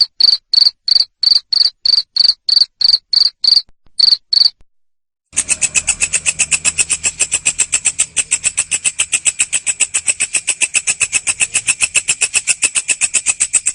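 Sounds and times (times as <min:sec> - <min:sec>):
cricket chirping: 0:00.0 - 0:04.6, 0:05.4 - 0:13.7
buzzy pulsed sound: 0:05.3 - 0:13.7.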